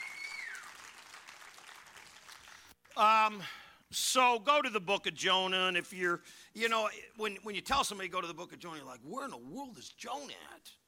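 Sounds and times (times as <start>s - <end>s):
crowd clapping: 0.0s - 3.1s
speech: 3.0s - 10.8s.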